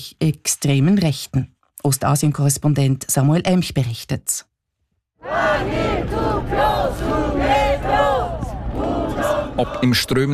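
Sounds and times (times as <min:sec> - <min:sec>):
speech: 0:00.0 - 0:04.5, 0:05.2 - 0:08.1, 0:08.8 - 0:10.3
retired protesters chanting: 0:05.2 - 0:10.3.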